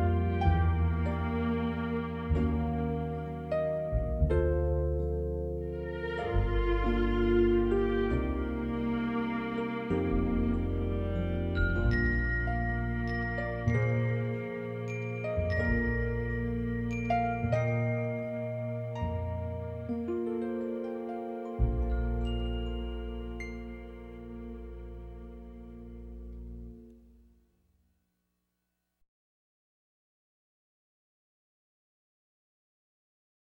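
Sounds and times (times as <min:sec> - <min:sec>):
violas playing a romance: 0:00.0 - 0:05.0, 0:05.6 - 0:27.0.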